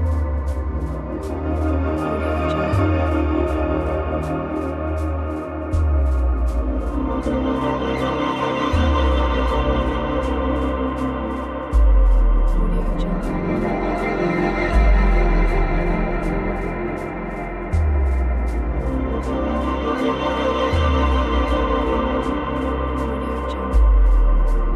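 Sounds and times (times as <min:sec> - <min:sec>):
dark cinematic atmospheric background music: 0:00.0 - 0:24.7.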